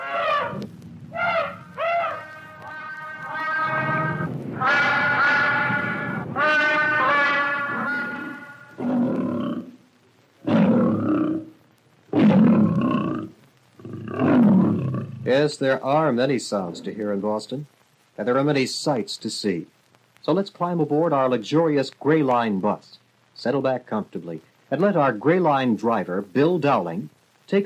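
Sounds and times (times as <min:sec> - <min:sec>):
animals at Franklin Park Zoo calling: 0:00.0 - 0:09.8, 0:10.5 - 0:11.5, 0:12.1 - 0:16.0
speech: 0:15.3 - 0:27.6.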